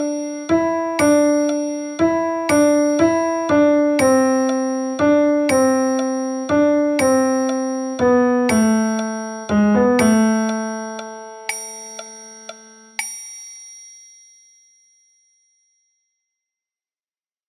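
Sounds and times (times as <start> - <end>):
piano music: 0.0 - 13.0.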